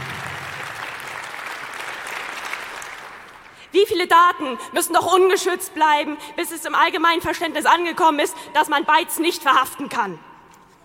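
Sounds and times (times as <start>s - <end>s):
audience clapping: 0.0s - 3.6s
speech: 3.7s - 10.3s.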